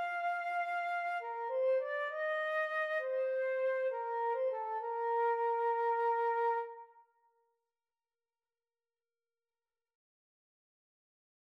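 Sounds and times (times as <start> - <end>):
flute and clarinet duet: 0.0 - 6.9.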